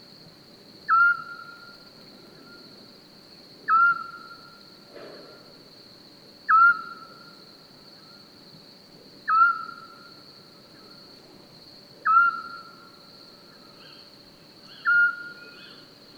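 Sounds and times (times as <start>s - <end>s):
scops owl calling: 0.9s - 1.7s, 3.7s - 4.4s, 6.5s - 7.3s, 9.3s - 10.1s, 12.0s - 12.8s, 14.7s - 15.9s.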